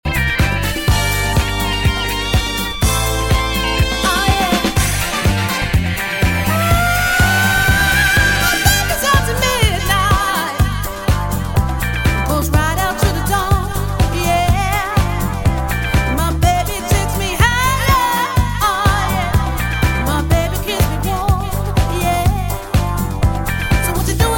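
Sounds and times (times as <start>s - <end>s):
disco music: 0.1s - 24.3s.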